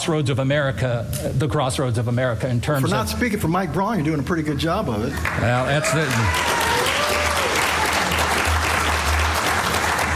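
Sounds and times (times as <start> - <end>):
speech: 0.0 - 6.6
audience applause: 5.2 - 10.1.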